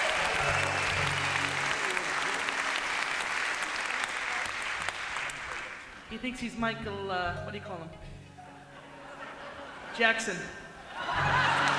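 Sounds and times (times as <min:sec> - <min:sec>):
laughter: 0:00.0 - 0:03.0, 0:08.6 - 0:11.7
audience applause: 0:00.0 - 0:06.1, 0:11.0 - 0:11.7
speech: 0:06.1 - 0:08.1, 0:10.0 - 0:11.4.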